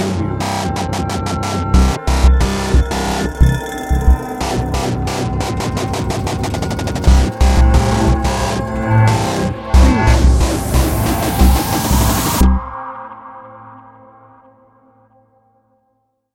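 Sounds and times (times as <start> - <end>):
dark pulsing textures: 0.0 - 12.8
eerie strings: 0.0 - 12.9.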